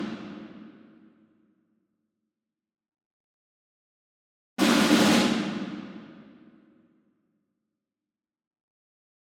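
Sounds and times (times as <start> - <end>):
ensemble snare drum group roll: 4.6 - 5.7.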